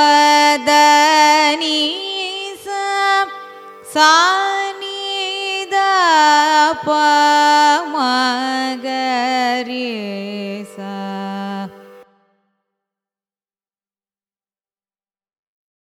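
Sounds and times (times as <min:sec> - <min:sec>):
carnatic raga scale ascending and descending: 0:00.0 - 0:12.4.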